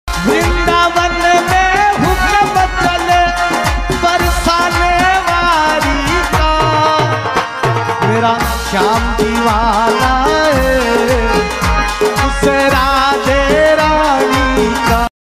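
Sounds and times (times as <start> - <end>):
bhakti ringtone: 0.1 - 15.1.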